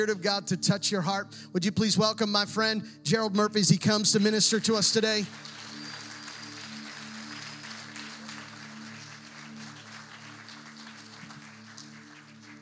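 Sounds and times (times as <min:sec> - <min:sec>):
speech: 0:00.0 - 0:05.6
low sustained musical tones: 0:04.0 - 0:12.6
audience clapping: 0:04.5 - 0:12.6.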